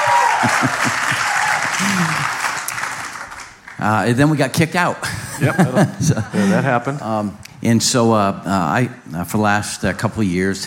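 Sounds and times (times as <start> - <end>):
laughter: 0.0 - 2.5, 5.0 - 7.0
audience clapping: 0.0 - 4.2
speech: 0.4 - 1.2, 1.8 - 2.4, 3.8 - 10.6.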